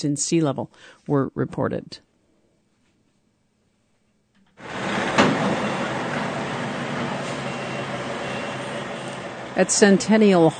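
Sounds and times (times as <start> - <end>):
speech: 0.0 - 2.1, 9.6 - 10.5
heavy equipment moving a nearly 50-year-old wooden canoe: 4.6 - 10.5.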